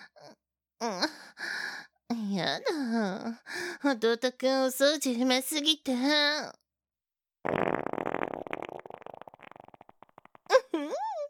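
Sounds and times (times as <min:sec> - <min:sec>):
speech: 0:00.8 - 0:01.2, 0:02.4 - 0:06.6
long rasping fart: 0:07.5 - 0:10.6.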